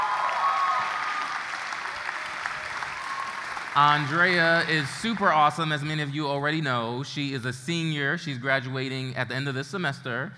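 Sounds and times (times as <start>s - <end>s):
congregation applause for a speaker coming to the church pulpit: 0.0s - 6.2s
speech: 3.7s - 10.3s.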